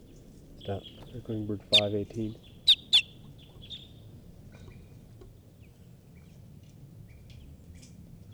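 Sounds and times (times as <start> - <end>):
steady low outdoor rumble: 0.0 - 8.3
wild bird alarm calls: 0.6 - 4.2
speech: 0.7 - 2.5.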